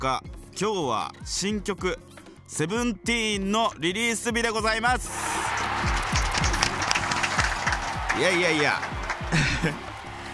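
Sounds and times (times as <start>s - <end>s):
speech: 0.0s - 5.3s, 8.2s - 9.9s
applause from people in the studio: 5.1s - 10.3s
laughter: 5.1s - 10.3s.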